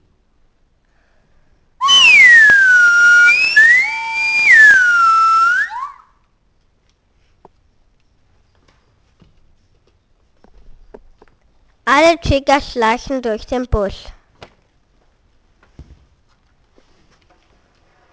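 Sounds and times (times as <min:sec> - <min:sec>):
parrot whistling calls: 0:01.8 - 0:06.1
speech: 0:12.1 - 0:14.2.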